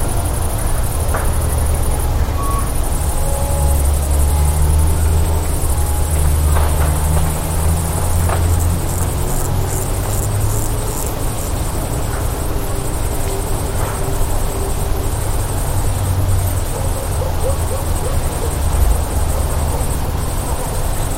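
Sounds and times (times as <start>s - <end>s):
woodland ambience: 0.0s - 21.1s.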